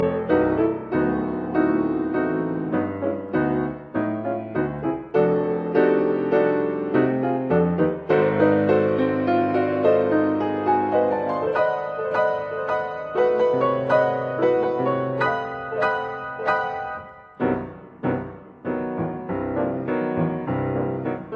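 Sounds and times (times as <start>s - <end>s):
piano sonata: 0.0s - 21.3s.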